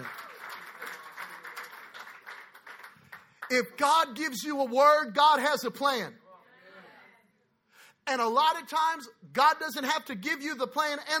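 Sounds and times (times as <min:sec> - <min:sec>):
audience clapping: 0:00.0 - 0:03.9
speech: 0:03.5 - 0:06.2, 0:08.1 - 0:11.1.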